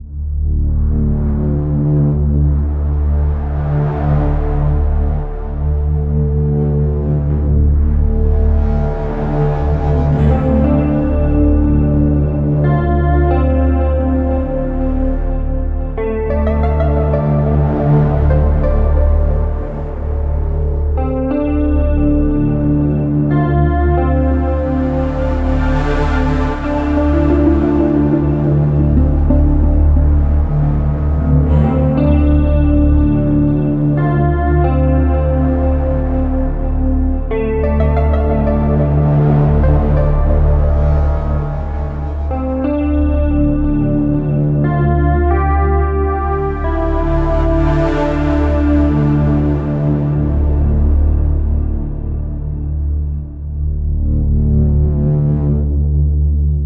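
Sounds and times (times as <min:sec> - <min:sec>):
ambient loop: 0:00.0 - 0:56.6.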